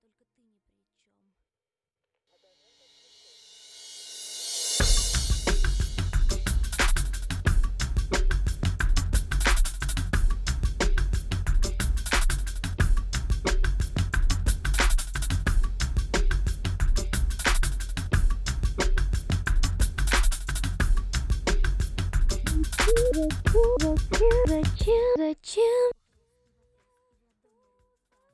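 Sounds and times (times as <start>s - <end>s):
music beat: 4.8s - 25.1s.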